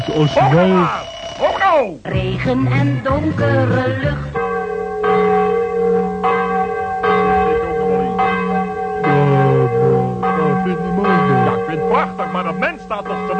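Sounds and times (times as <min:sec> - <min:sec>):
speech: 0:00.0 - 0:01.1, 0:01.7 - 0:04.4, 0:10.6 - 0:13.3
alarm clock bell ringing: 0:00.0 - 0:01.8, 0:04.3 - 0:13.3.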